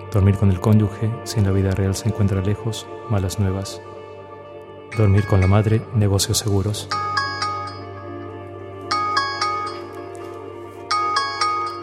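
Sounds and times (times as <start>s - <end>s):
speech: 0.1s - 4.0s, 5.0s - 7.4s
alarm ringing: 4.9s - 5.9s, 6.9s - 8.2s, 8.9s - 10.1s, 10.9s - 11.8s.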